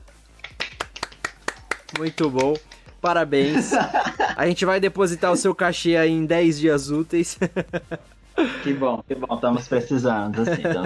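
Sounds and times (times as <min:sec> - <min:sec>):
applause, hands clapping: 0:00.4 - 0:02.8
speech: 0:01.9 - 0:10.8
laughter: 0:03.4 - 0:04.5, 0:07.4 - 0:08.6, 0:09.4 - 0:10.8.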